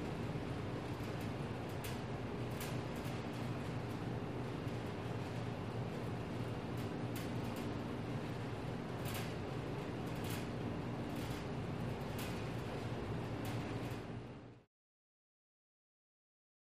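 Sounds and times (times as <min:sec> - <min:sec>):
air conditioner rattle in a supply room: 0:00.0 - 0:14.6.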